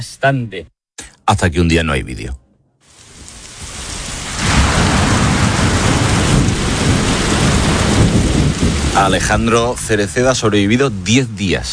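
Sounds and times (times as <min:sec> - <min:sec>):
speech: 0:00.0 - 0:00.7, 0:01.3 - 0:02.4, 0:09.0 - 0:11.7
heavy rain in a thunderstorm: 0:02.8 - 0:11.7
deep thunder rumbling: 0:03.0 - 0:11.7.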